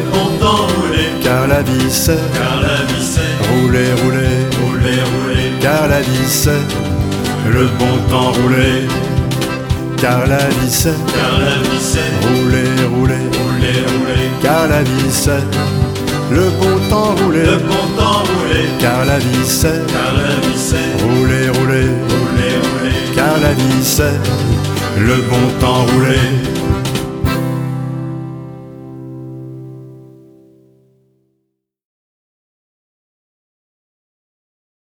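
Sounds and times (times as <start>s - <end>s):
cajun music: 0.0s - 30.0s.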